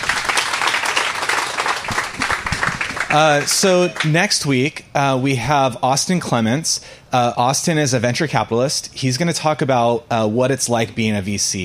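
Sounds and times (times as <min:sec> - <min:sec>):
audience applause: 0:00.0 - 0:04.3
speech: 0:03.1 - 0:11.6.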